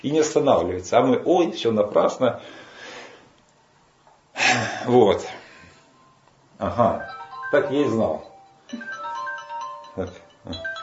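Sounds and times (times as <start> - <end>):
speech: 0.0 - 2.7, 4.5 - 5.4, 6.6 - 8.9, 10.0 - 10.7
mobile phone ringing: 6.0 - 10.8.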